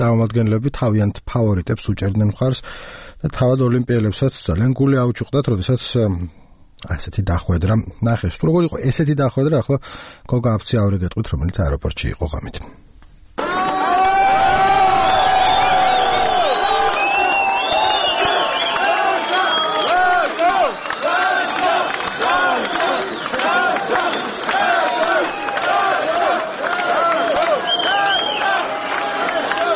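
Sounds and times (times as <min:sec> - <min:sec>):
speech: 0:00.0 - 0:12.9
fans cheering for Georgian Olympians at Tbilisi airport: 0:13.4 - 0:29.7.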